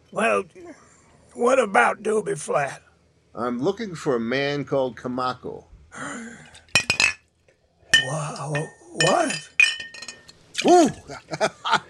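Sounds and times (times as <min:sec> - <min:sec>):
speech: 0:00.1 - 0:02.8, 0:03.4 - 0:06.5, 0:08.0 - 0:09.5, 0:10.6 - 0:11.8
glass bottle clinking: 0:06.6 - 0:07.3, 0:07.9 - 0:10.4
laughter: 0:10.9 - 0:11.8.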